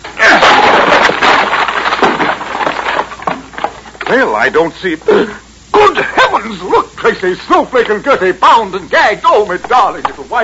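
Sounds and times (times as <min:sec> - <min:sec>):
door being forced open: 0:00.0 - 0:04.3
speech: 0:04.1 - 0:10.4.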